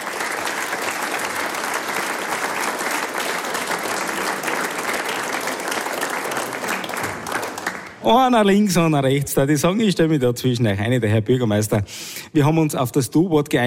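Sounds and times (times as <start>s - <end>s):
crowd audience applause: 0.0s - 8.2s
speech: 8.0s - 13.6s.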